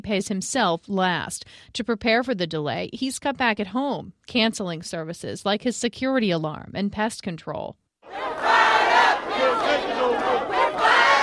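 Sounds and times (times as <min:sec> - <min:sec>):
speech: 0:00.0 - 0:08.5
protest rally crowd shouting: 0:08.1 - 0:11.2.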